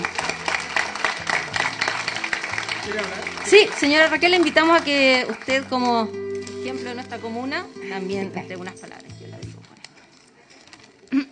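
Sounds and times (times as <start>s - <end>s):
applause: 0.0s - 6.7s
speech: 2.9s - 9.1s.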